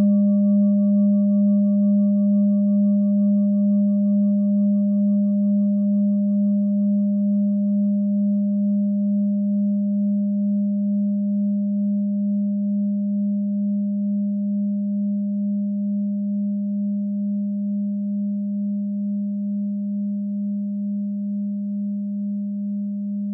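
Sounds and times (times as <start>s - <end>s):
set of singing bowls: 0.0s - 22.4s.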